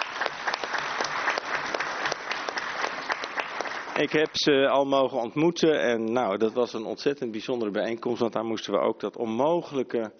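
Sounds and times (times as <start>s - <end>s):
audience clapping: 0.0s - 4.6s
speech: 4.0s - 10.1s.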